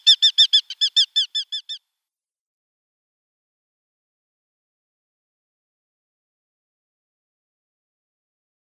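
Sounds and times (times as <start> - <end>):
Eurasian hobby giving sharp high calls: 0.0 - 1.8.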